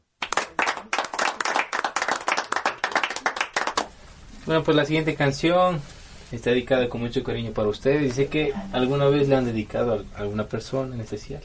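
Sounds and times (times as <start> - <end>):
audience applause: 0.2 - 3.9
speech: 4.5 - 11.4.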